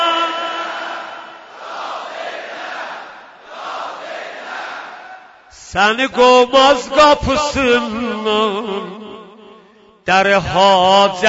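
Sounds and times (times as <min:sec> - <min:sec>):
crowd at a mourning recitation shouting: 0:00.0 - 0:05.5
speech: 0:05.7 - 0:09.1, 0:10.1 - 0:11.2.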